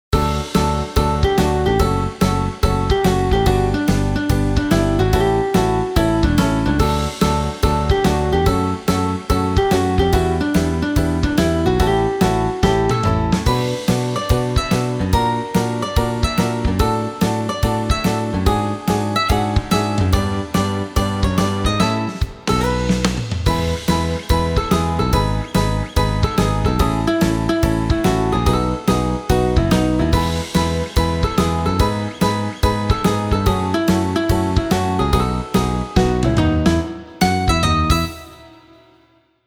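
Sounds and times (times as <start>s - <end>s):
144 shuffle rhythm: 0.1s - 38.4s.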